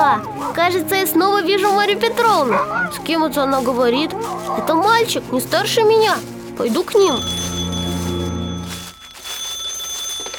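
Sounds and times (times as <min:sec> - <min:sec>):
speech: 0:00.2 - 0:07.6
phone ringing: 0:07.2 - 0:10.3.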